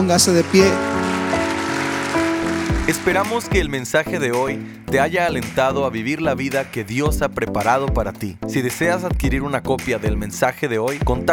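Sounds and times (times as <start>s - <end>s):
speech: 0.0s - 1.0s, 2.9s - 11.3s
audience applauding: 0.0s - 3.8s.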